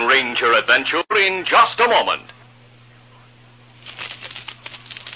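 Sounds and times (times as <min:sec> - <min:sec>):
speech: 0:00.1 - 0:02.3
handful of genuine foreign coins jingling: 0:03.8 - 0:05.1.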